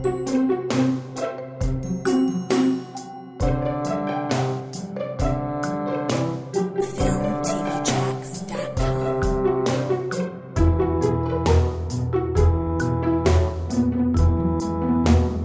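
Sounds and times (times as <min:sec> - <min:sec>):
simple game music with drums: 0:00.0 - 0:15.4.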